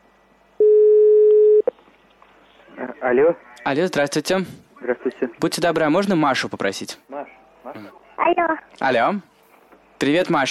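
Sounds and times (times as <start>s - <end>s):
telephone line tone while placing a call: 0.6s - 1.7s
speech: 2.8s - 7.1s, 7.7s - 9.3s, 10.0s - 10.4s.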